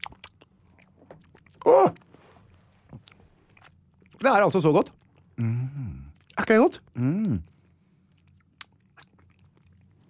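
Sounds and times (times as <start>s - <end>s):
person eating mangosteen fruit: 0.0s - 4.2s, 7.0s - 10.0s
speech: 1.6s - 2.0s, 4.2s - 5.6s, 6.4s - 7.5s.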